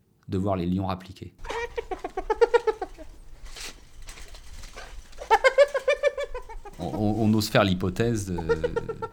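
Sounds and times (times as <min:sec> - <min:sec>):
speech: 0:00.3 - 0:01.5, 0:06.9 - 0:09.1
hyena laughing calls: 0:01.4 - 0:03.2, 0:05.2 - 0:06.8, 0:08.4 - 0:09.1.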